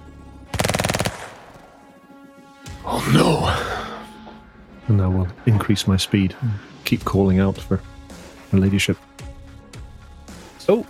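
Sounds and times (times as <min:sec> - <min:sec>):
automatic weapon fire echoing down a tunnel: 0:00.5 - 0:01.9
speech: 0:02.9 - 0:03.8, 0:04.9 - 0:07.9, 0:08.5 - 0:09.1, 0:10.7 - 0:10.8.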